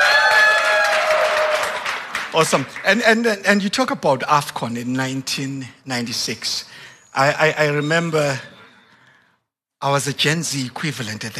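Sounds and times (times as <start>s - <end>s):
audience applause: 0.0s - 3.2s
speech: 2.3s - 8.5s, 9.8s - 11.3s.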